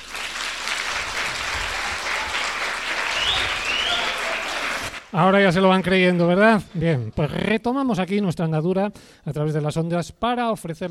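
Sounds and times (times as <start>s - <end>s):
loud applause from a hall audience: 0.0s - 5.2s
faint high whistle: 3.0s - 5.0s
speech: 5.1s - 10.8s.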